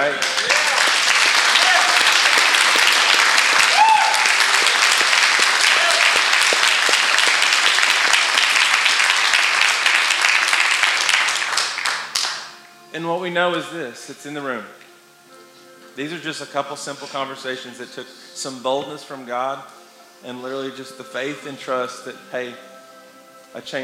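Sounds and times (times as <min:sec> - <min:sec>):
audience applause: 0:00.0 - 0:12.6
speech: 0:13.0 - 0:14.8, 0:16.0 - 0:22.7, 0:23.5 - 0:23.8.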